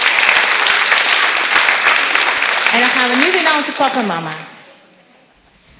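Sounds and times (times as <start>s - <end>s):
audience applause: 0.0s - 4.0s
speech: 2.8s - 4.6s.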